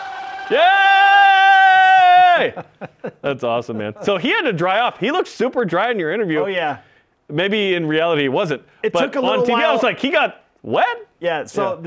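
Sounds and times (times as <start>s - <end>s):
person shouting a cheer in a locker room celebration: 0.4s - 2.6s, 9.2s - 10.0s
speech: 0.5s - 0.9s, 2.4s - 11.8s
laughter: 2.4s - 4.2s.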